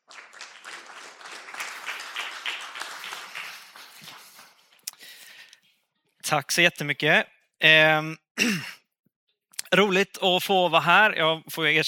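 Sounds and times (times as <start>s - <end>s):
audience applause: 0.0s - 4.8s
speech: 6.3s - 8.7s, 9.7s - 11.8s.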